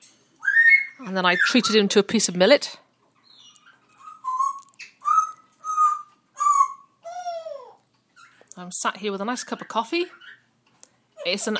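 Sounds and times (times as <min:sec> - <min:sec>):
pet bird whistling: 0:00.4 - 0:01.8, 0:03.3 - 0:07.0
speech: 0:01.0 - 0:02.8, 0:08.7 - 0:10.4, 0:11.2 - 0:11.5.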